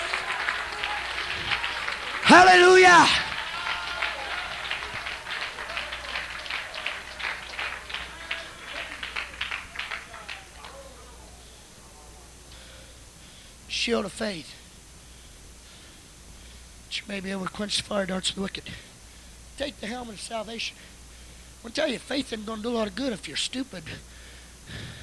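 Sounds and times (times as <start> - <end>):
audience hand clapping: 0.0 - 10.8
person shouting: 2.2 - 3.4
speech: 2.3 - 3.2, 13.9 - 14.6, 17.1 - 18.9, 19.6 - 20.9, 21.6 - 24.1, 24.7 - 25.0.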